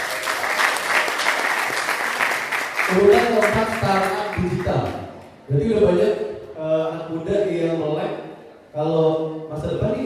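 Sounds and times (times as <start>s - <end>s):
applause: 0.0s - 5.0s
speech: 2.9s - 10.0s.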